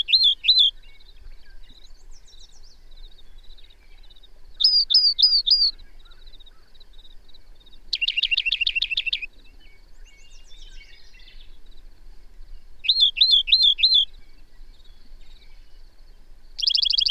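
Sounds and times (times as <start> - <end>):
bird song trill: 0.0 - 17.1.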